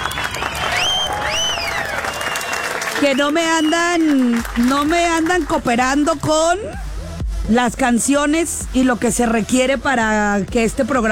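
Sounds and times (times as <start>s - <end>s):
whistles: 0.0s - 4.1s
applause and cheering for a program's operator and producer: 0.0s - 6.3s
speech: 3.0s - 6.9s, 7.5s - 11.0s.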